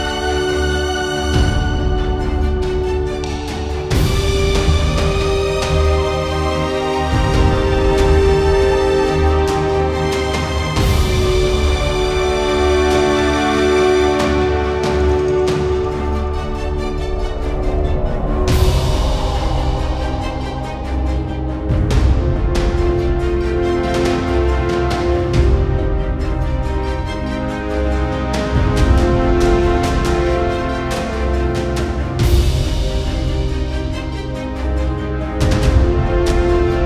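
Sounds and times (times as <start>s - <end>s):
intense main game music: 0.0s - 36.8s.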